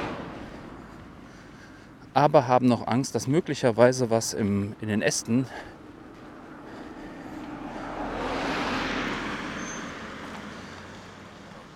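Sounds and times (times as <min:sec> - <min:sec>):
cars driving past: 0:00.0 - 0:02.2, 0:05.4 - 0:11.7
speech: 0:02.2 - 0:05.8.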